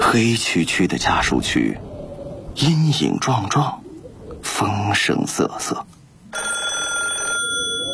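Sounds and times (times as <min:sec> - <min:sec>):
speech: 0:00.1 - 0:01.9, 0:02.6 - 0:03.8, 0:04.6 - 0:05.9
telephone bell ringing: 0:06.3 - 0:07.9.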